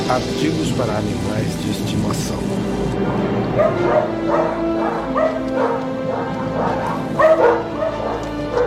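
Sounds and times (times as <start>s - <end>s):
speech: 0.1s - 6.0s
dog barking: 3.5s - 8.6s.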